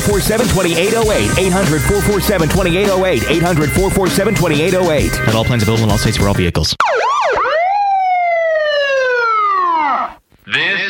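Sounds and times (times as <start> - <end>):
speech: 0.0 - 7.1
police car siren: 6.8 - 10.2.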